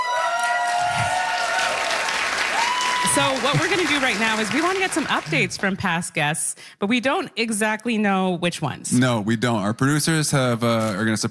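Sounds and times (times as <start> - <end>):
live audience cheering and applauding at a long-running show: 0.0 - 5.8
speech: 3.1 - 11.2.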